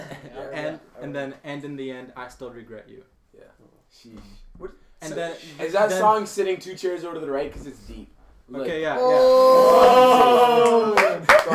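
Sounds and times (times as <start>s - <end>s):
speech: 1.0s - 11.5s
person clapping hands: 10.6s - 11.5s.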